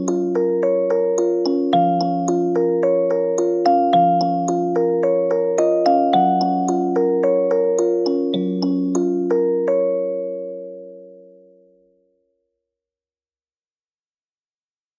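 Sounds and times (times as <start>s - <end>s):
music box: 0.0s - 11.1s.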